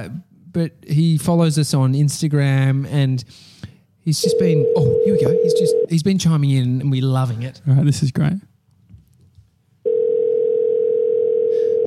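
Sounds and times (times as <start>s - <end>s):
speech: 0.0s - 8.5s
phone call ringing tone: 4.2s - 5.9s, 9.9s - 11.8s.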